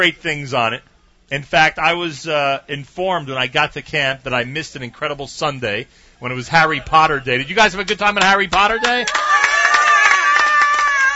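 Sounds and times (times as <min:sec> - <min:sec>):
speech: 0:00.0 - 0:09.4
crowd of campers cheering: 0:07.4 - 0:11.1
crowd of campers clapping: 0:07.8 - 0:11.1.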